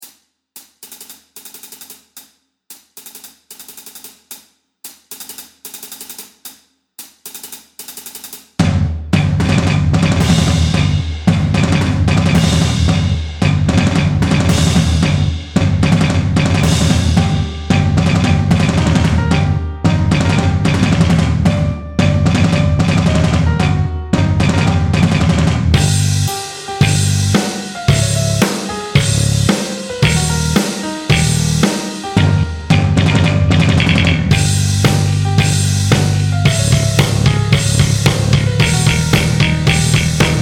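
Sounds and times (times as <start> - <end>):
backing track: 9.2 - 40.3.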